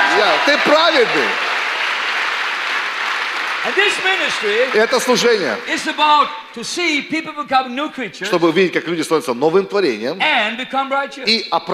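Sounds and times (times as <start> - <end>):
crowd applause: 0.0 - 6.1
speech: 0.3 - 1.5, 3.6 - 11.7.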